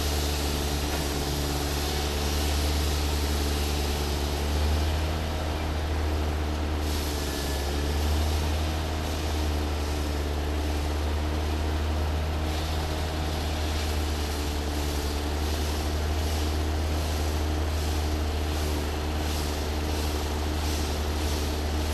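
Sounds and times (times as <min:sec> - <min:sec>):
truck engine idling: 0:00.0 - 0:21.9.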